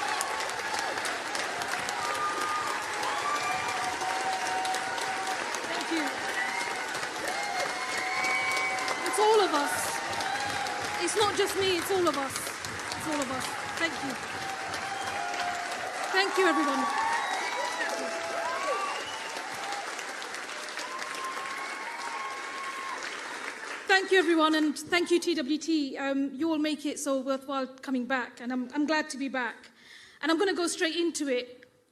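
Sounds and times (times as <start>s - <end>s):
audience clapping and applauding: 0.0s - 24.7s
speech: 11.2s - 14.4s, 16.2s - 17.0s, 24.1s - 31.6s.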